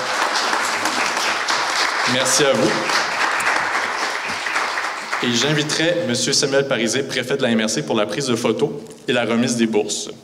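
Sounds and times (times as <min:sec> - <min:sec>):
audience applause: 0:00.0 - 0:06.4
speech: 0:02.1 - 0:03.1, 0:05.2 - 0:10.2.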